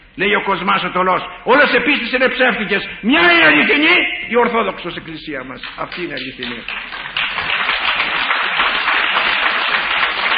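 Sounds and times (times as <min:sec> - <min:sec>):
speech: 0:00.2 - 0:07.0
audience applause: 0:05.9 - 0:10.3.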